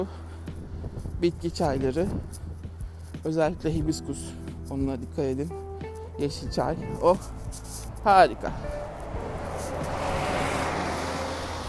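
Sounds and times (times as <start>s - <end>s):
speech: 0.0s - 0.2s, 1.2s - 2.5s, 3.2s - 5.6s, 6.2s - 8.8s
bus passing by: 6.8s - 11.6s.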